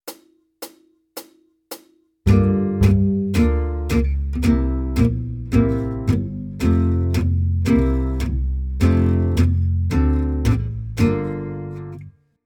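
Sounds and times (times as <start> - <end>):
jazz guitar: 2.3 - 12.1.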